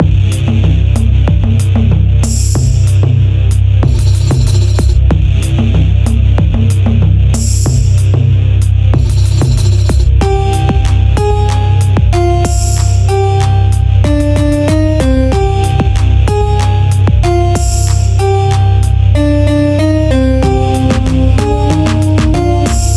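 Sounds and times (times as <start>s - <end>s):
ethnic hip hop: 0.0s - 22.9s.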